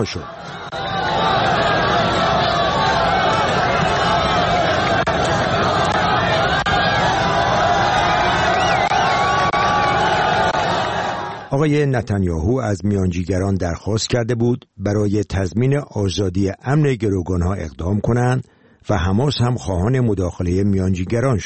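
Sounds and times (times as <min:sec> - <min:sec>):
speech: 0:00.0 - 0:00.8, 0:11.5 - 0:21.4
crowd clamor and shouting from Palestinian militants and local residents at a hostage handover: 0:00.0 - 0:11.6.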